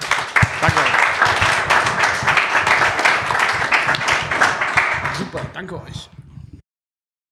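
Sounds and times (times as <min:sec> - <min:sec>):
audience applause: 0:00.0 - 0:06.1
speech: 0:05.6 - 0:06.2.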